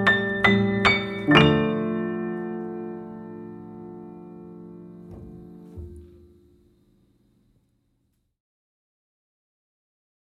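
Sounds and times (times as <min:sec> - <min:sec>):
Christmas song: 0:00.0 - 0:06.6.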